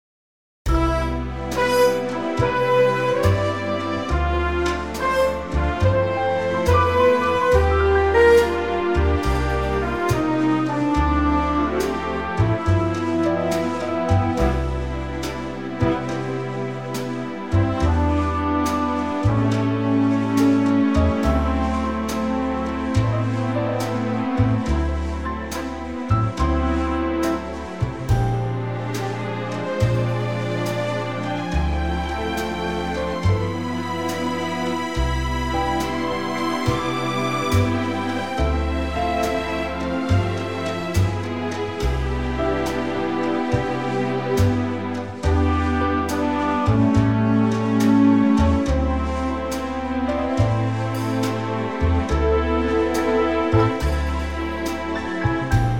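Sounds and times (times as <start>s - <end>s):
orchestra C chord: 0.7s - 55.7s.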